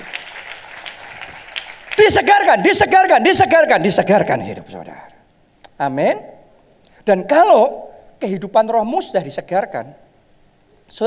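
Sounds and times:
audience applauding: 0.0 - 2.6
speech: 2.0 - 5.1, 5.8 - 6.3, 7.0 - 10.0.

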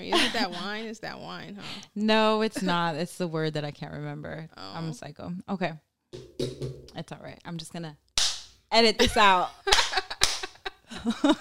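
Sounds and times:
speech: 0.0 - 8.0, 8.7 - 10.0, 11.0 - 11.3
sharp hand claps: 8.2 - 8.5, 9.7 - 10.6.

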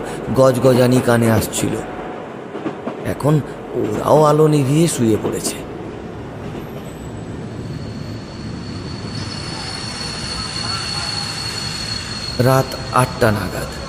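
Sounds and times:
night train pulling into a station, wheels rumbling on rails: 0.0 - 13.8
speech: 0.3 - 2.0, 3.1 - 5.7, 12.4 - 13.8
thin high train wheel squeals: 6.9 - 13.8.

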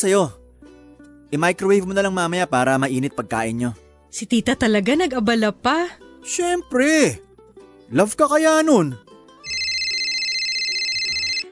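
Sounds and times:
speech: 0.0 - 0.4, 1.3 - 7.3, 7.9 - 9.1
phone ringing with incoming call: 9.5 - 11.5.

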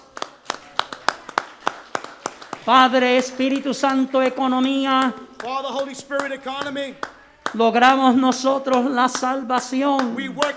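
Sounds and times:
hand clapping: 0.0 - 10.5
speech: 2.6 - 10.5.

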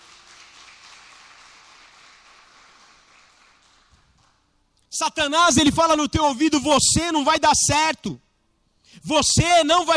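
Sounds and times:
crowd clapping: 0.0 - 4.5
speech: 5.0 - 8.3, 9.0 - 9.9.

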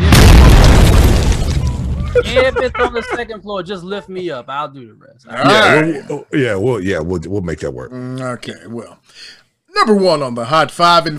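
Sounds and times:
explosion sound effect from a button: 0.0 - 2.8
laughter: 2.0 - 3.5
speech: 2.3 - 11.1.

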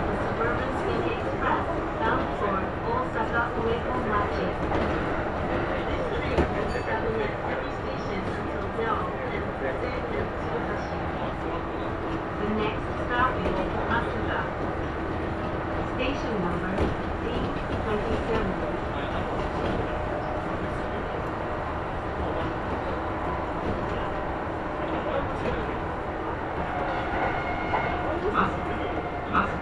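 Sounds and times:
Kintetsu Osaka Line section semi-express six-car train rumble and rattle: 0.0 - 29.6.

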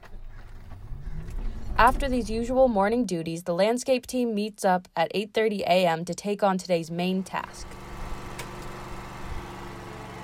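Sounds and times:
speech: 1.8 - 7.8
lawn mower engine droning while mowing: 7.2 - 10.2.

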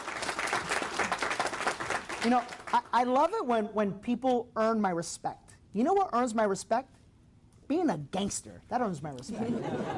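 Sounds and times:
audience round of applause: 0.0 - 2.7
speech: 2.2 - 7.0, 7.7 - 9.9
laughter: 9.3 - 9.9.

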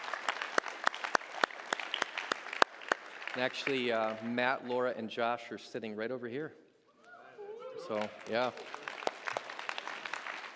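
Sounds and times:
audience clapping: 0.0 - 4.9, 7.8 - 10.5
speech: 3.4 - 6.6, 7.8 - 8.8.

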